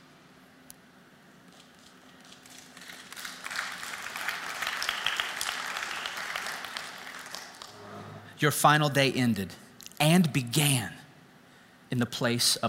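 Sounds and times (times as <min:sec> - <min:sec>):
audience applause: 0:02.2 - 0:08.3
speech: 0:08.4 - 0:11.0, 0:11.9 - 0:12.6.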